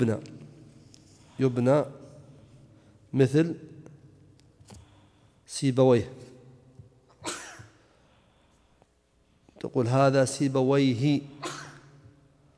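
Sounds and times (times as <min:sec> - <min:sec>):
speech: 0:00.0 - 0:00.3, 0:01.4 - 0:02.0, 0:03.1 - 0:03.7, 0:05.5 - 0:06.2, 0:09.6 - 0:11.4
sneeze: 0:11.4 - 0:11.9.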